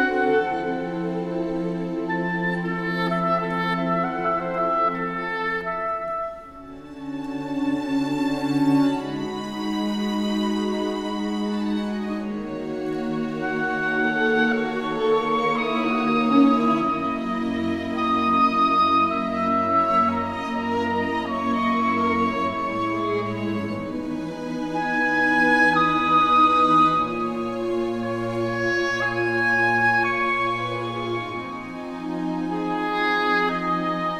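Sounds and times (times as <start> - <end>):
oboe: 0.0 - 34.1
strings: 0.0 - 34.1.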